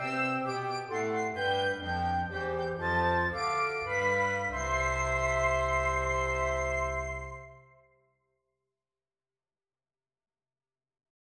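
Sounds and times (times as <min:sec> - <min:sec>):
Christmas song accompaniment: 0:00.0 - 0:07.8.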